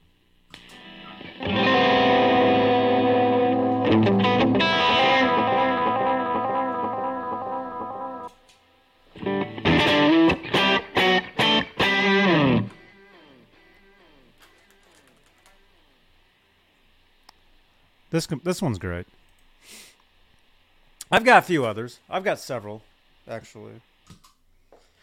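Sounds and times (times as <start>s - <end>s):
siren effect from a guitar pedal: 0.6s - 8.4s, 9.2s - 16.0s
speech: 18.2s - 19.8s, 21.1s - 24.3s.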